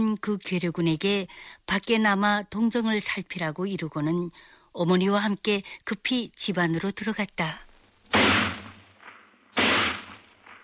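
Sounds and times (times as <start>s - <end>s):
speech: 0.0s - 8.4s
gunshots: 8.1s - 10.6s.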